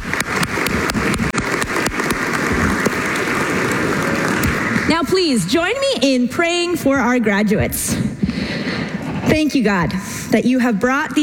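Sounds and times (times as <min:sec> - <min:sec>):
audience applause: 0:00.0 - 0:05.3
speech: 0:04.9 - 0:08.1, 0:09.3 - 0:11.2.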